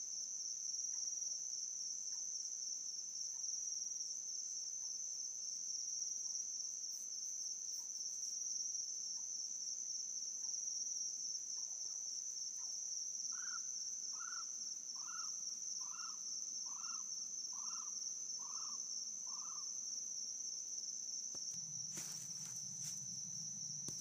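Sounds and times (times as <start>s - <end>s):
nighttime ambience in Australia: 13.3s - 24.0s.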